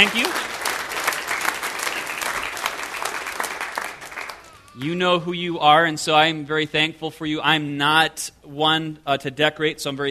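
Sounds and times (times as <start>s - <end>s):
speech: 0.0s - 0.5s, 4.8s - 10.0s
audience hand clapping: 0.0s - 5.0s.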